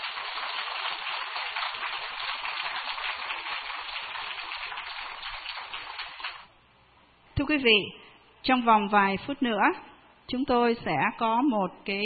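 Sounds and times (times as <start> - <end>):
audience applause: 0.0 - 6.5
speech: 7.4 - 12.0.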